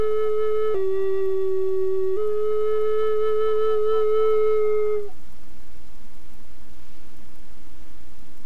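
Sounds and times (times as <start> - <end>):
Tulip flutes in E with 1 bore: 0.0 - 5.2.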